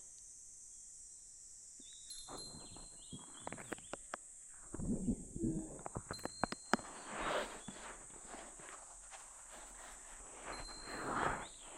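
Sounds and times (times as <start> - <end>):
ASMR ear massage sounds: 2.1 - 11.7.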